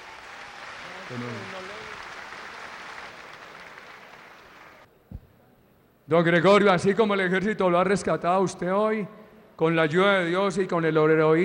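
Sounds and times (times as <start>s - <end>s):
crowd applauding: 0.0s - 4.9s
speech: 1.1s - 1.7s, 6.1s - 11.4s.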